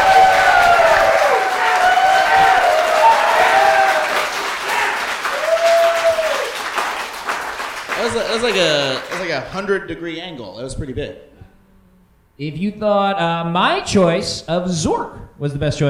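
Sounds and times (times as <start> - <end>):
voices cheering and whooping: 0.0 - 6.6
crowd clapping: 0.0 - 9.7
speech: 8.4 - 11.4, 12.4 - 15.8.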